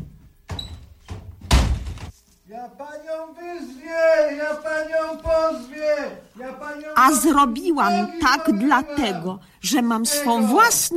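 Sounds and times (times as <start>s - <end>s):
door slamming shut: 0.0s - 2.2s
speech: 2.5s - 10.9s.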